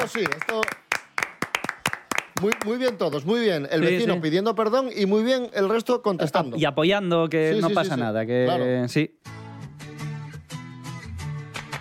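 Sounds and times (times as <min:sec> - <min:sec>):
speech: 0:00.0 - 0:00.8, 0:02.4 - 0:09.4
applause: 0:00.0 - 0:03.4, 0:11.5 - 0:11.7.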